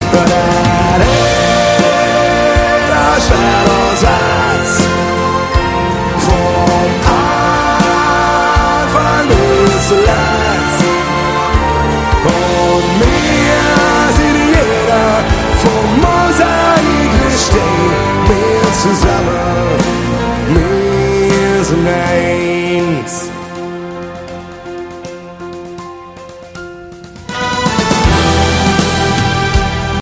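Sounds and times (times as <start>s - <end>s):
orchestra playing live: 0.0s - 29.9s.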